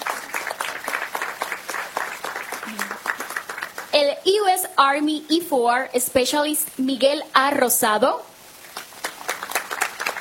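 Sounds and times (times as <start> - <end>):
audience applause: 0.0 - 3.9, 8.7 - 10.2
speech: 4.0 - 8.3.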